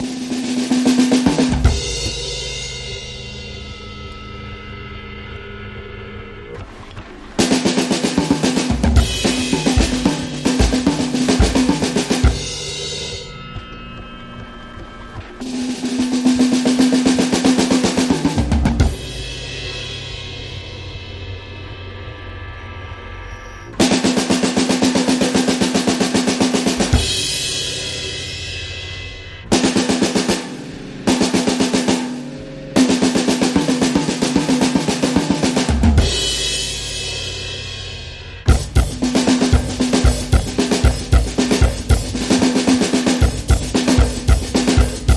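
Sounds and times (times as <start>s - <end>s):
drum fills: 0.0s - 4.1s, 6.5s - 21.4s, 23.8s - 45.1s.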